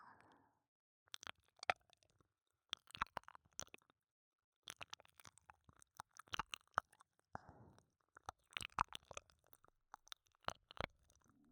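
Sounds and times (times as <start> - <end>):
ASMR ear licking: 1.2 - 2.1, 2.7 - 3.9, 4.7 - 7.1, 8.1 - 11.3.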